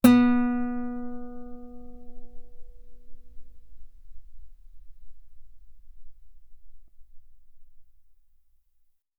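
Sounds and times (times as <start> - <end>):
guitar B3 note on B string played fortissimo: 0.0 - 7.0.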